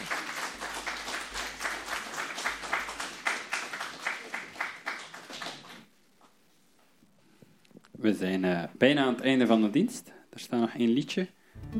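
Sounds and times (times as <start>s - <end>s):
applause in church: 0.0s - 5.9s
speech: 8.0s - 11.7s.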